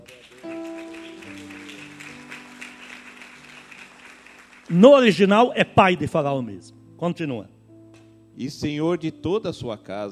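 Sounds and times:
crowd applauding: 0:00.0 - 0:05.3
sustained keyboard chords: 0:00.4 - 0:10.1
speech: 0:04.7 - 0:07.6, 0:08.4 - 0:10.1.

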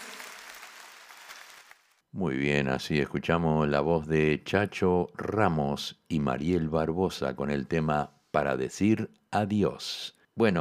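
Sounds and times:
audience applause for the musicians: 0:00.0 - 0:01.9
speech: 0:02.2 - 0:10.5.

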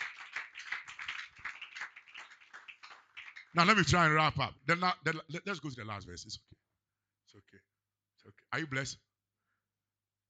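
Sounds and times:
crowd clapping: 0:00.0 - 0:04.3
speech: 0:03.6 - 0:06.6, 0:08.5 - 0:09.1.

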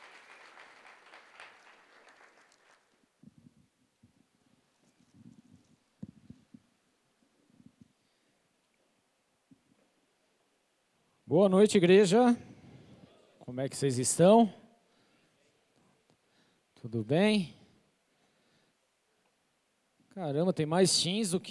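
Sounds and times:
church audience applauding: 0:00.0 - 0:03.1
speech: 0:11.3 - 0:12.5, 0:13.6 - 0:14.6, 0:16.9 - 0:17.6, 0:20.2 - 0:21.4.

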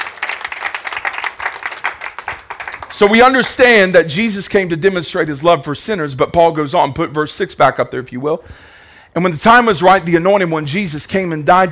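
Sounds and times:
audience hand clapping: 0:00.0 - 0:03.2
speech: 0:03.0 - 0:11.7.

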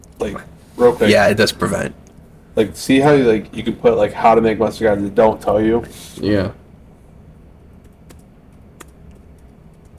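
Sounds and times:
speech: 0:00.2 - 0:02.0, 0:02.6 - 0:06.6
slow typing on a computer keyboard: 0:07.7 - 0:09.9.

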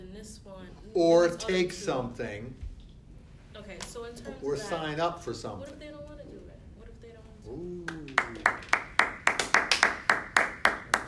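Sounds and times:
speech: 0:00.2 - 0:02.7, 0:03.6 - 0:06.4
one pair of hands clapping: 0:07.9 - 0:11.0.

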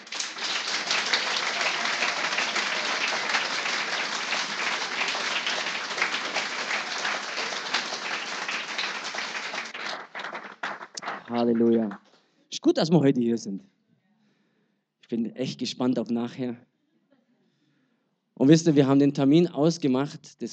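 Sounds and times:
audience applause: 0:00.0 - 0:12.0
speech: 0:11.3 - 0:12.0, 0:12.6 - 0:13.8, 0:15.1 - 0:16.7, 0:18.4 - 0:20.5.

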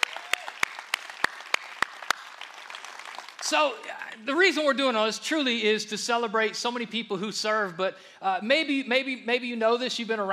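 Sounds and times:
church congregation clapping to welcome a new children's director: 0:00.0 - 0:04.2
speech: 0:03.4 - 0:10.3.

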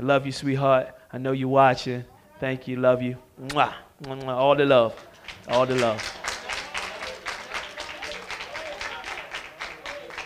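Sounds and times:
speech: 0:00.0 - 0:06.2
audience clapping: 0:04.0 - 0:10.2.

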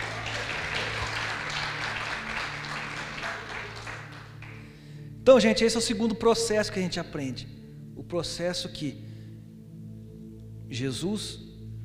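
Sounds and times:
audience applause: 0:00.0 - 0:04.6
speech: 0:05.3 - 0:09.1, 0:10.7 - 0:11.4.

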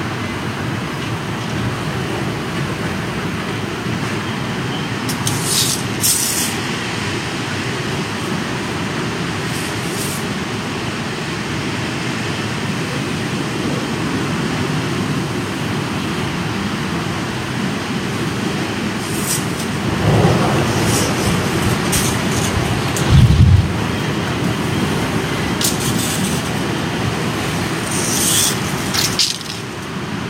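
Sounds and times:
strong rainy-season wind roaring: 0:00.0 - 0:30.2
bright rushes or rattles: 0:19.0 - 0:23.9, 0:25.5 - 0:26.8, 0:27.4 - 0:29.9
heavy low thump: 0:23.0 - 0:23.8.

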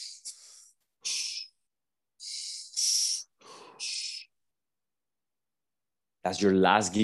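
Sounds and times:
sharp hissing inhalations through nose and mouth in a breathing exercise: 0:00.0 - 0:04.4
speech: 0:06.2 - 0:07.0.

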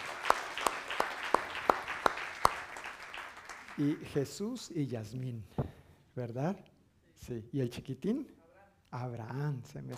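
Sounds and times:
audience clapping: 0:00.0 - 0:04.3
low hiss: 0:00.0 - 0:09.9
speech: 0:03.8 - 0:09.9.

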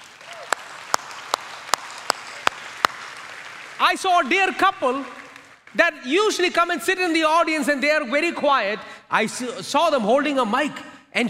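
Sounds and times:
rhythmic clapping from a church audience: 0:00.0 - 0:06.0
speech: 0:03.8 - 0:11.2.

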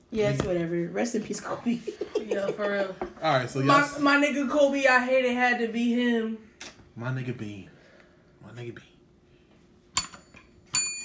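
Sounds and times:
speech: 0:00.1 - 0:07.8, 0:08.6 - 0:08.9
laughter: 0:01.7 - 0:03.1
small bright bell struck and choked: 0:10.0 - 0:11.0.

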